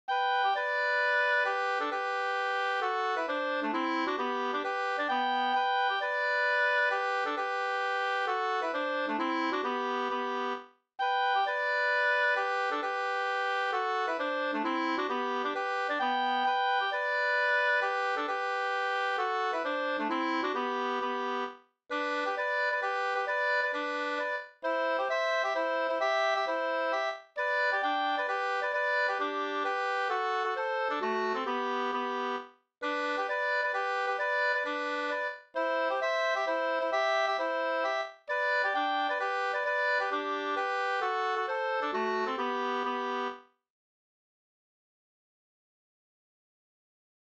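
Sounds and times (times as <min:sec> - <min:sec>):
two-part polska folk dance tune: 0:00.1 - 0:43.4.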